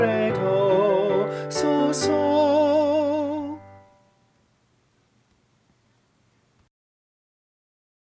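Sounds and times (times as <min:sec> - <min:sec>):
tenor singing solfege: 0:00.0 - 0:04.1.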